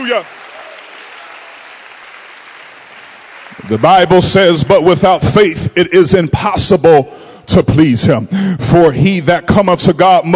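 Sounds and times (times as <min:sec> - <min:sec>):
audience clapping hands: 0:00.0 - 0:05.2
speech: 0:00.1 - 0:00.4, 0:03.6 - 0:10.3.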